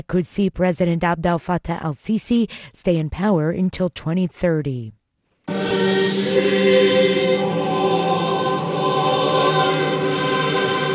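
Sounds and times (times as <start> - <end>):
speech: 0.0 - 5.0, 5.8 - 7.5
choir singing during Easter Mass in a city square: 5.5 - 10.9.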